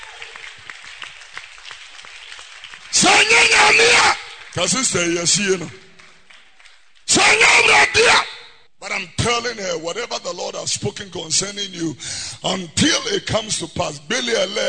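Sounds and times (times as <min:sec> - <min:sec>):
audience clapping: 0:00.0 - 0:07.3
speech: 0:02.9 - 0:05.9, 0:07.2 - 0:08.3, 0:08.9 - 0:14.6.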